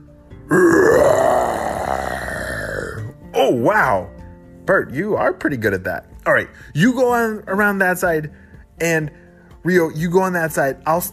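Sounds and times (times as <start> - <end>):
person imitating a dinosaur roar: 0.5 - 3.1
speech: 3.5 - 4.1, 4.7 - 11.1.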